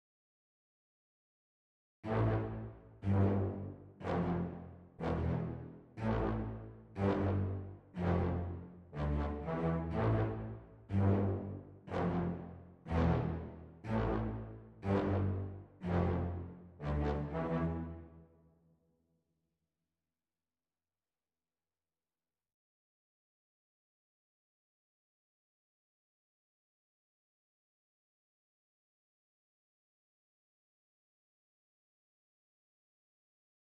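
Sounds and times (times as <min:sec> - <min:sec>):
brass instruments: 0:02.0 - 0:18.2.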